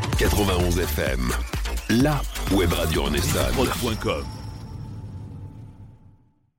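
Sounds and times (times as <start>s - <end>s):
jingle with spoken voice: 0.2s - 4.4s.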